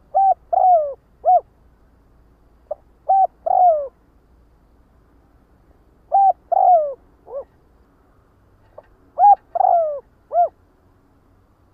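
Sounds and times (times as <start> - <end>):
spotted dove cooing: 0.0 - 1.5, 2.7 - 4.0, 6.1 - 7.6, 8.8 - 10.6.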